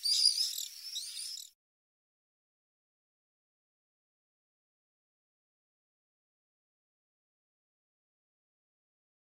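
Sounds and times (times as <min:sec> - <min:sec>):
Common Swift calling: 0:00.0 - 0:01.5.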